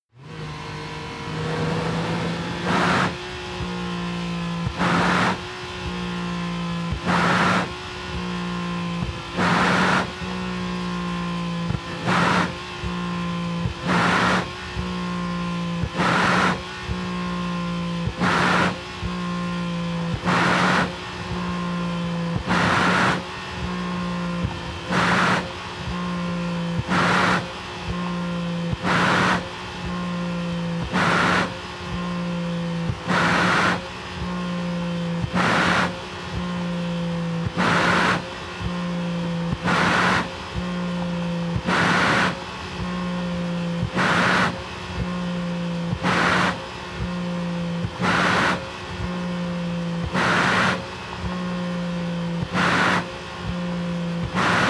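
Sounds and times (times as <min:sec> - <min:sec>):
sports car engine revving high heard from the interior: 0:00.0 - 0:54.6.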